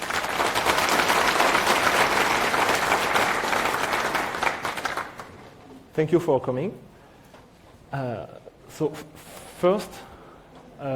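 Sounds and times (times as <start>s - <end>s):
conference audience applause in Brussels welcoming a speaker: 0.0s - 5.6s
speech: 6.0s - 6.9s, 7.9s - 10.1s.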